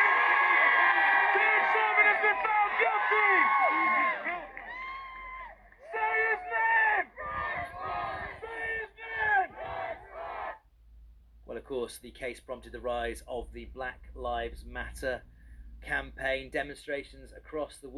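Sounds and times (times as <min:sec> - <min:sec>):
large crowd cheering outside a courthouse: 0:00.0 - 0:10.6
speech: 0:11.7 - 0:17.9.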